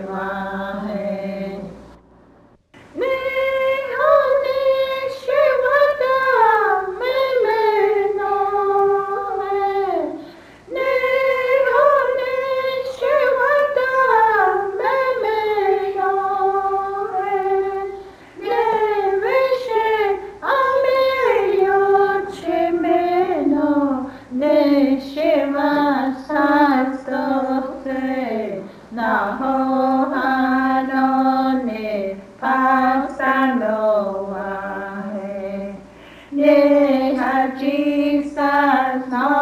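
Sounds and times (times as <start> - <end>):
hymnbook songs in Cheyenne language: 0.0 - 2.1, 2.8 - 39.3.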